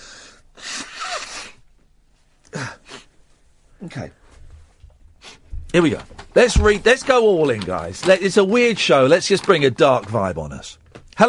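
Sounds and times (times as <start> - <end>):
person blowing nose: 0.0 - 1.7, 2.6 - 3.2, 5.2 - 5.5
speech: 3.8 - 4.2, 5.8 - 11.2.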